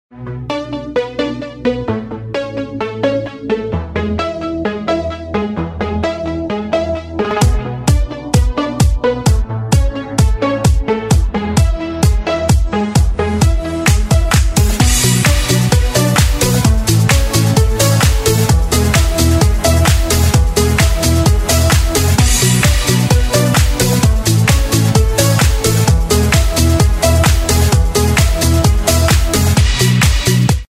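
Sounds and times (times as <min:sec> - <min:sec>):
instrumental music: 0:00.1 - 0:30.7.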